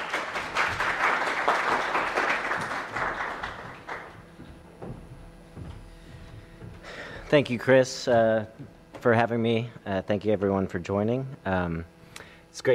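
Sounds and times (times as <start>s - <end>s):
audience applauding a speaker at an event in D.C.: 0.0s - 4.4s
speech: 7.3s - 11.9s, 12.6s - 12.7s.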